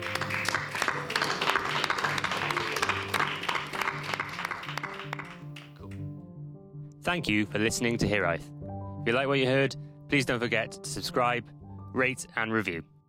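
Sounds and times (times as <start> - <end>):
audience applause: 0.0 - 5.9
speech: 7.1 - 12.9.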